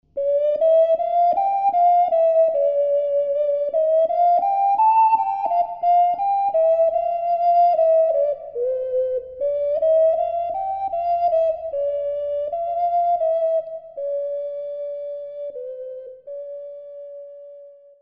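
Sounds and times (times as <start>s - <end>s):
ocarina playing a tourdion: 0.1s - 18.0s.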